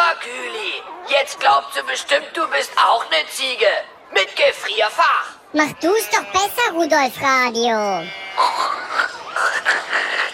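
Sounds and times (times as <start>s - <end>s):
speech: 1.2s - 8.8s
voice imitating pig grunting: 8.2s - 10.3s.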